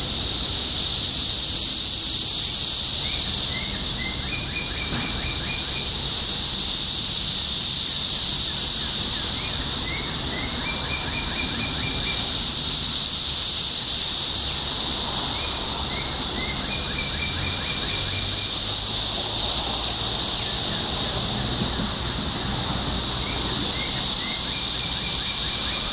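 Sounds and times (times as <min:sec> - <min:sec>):
shrill cicada chorus: 0:00.0 - 0:25.9.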